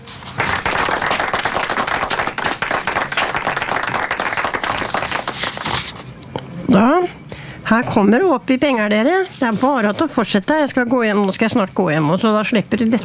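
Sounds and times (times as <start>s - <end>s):
audience clapping: 0.2s - 5.9s
speech: 6.7s - 7.0s, 7.7s - 13.0s.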